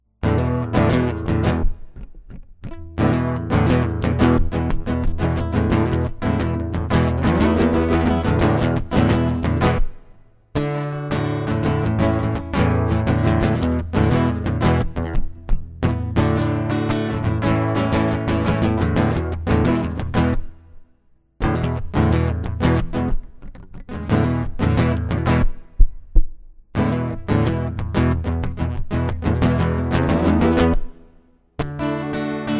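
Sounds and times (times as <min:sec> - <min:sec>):
acoustic music: 0:00.2 - 0:02.0, 0:02.7 - 0:20.6, 0:21.4 - 0:25.8, 0:26.8 - 0:32.5.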